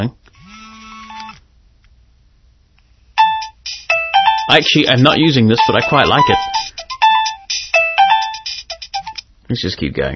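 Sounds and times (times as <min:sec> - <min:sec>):
speech: 0:00.0 - 0:00.2, 0:04.5 - 0:06.7, 0:09.5 - 0:10.1
built-in mobile phone ringtone: 0:03.2 - 0:09.2.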